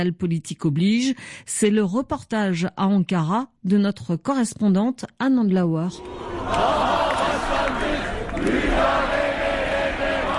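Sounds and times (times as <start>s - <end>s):
speech: 0.0s - 7.0s
crowd of protesters shouting and chanting: 6.0s - 10.3s.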